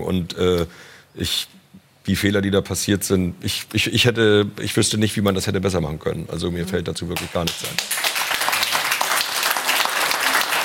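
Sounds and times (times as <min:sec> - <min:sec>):
speech: 0:00.0 - 0:07.9
studio audience applause: 0:07.4 - 0:10.6.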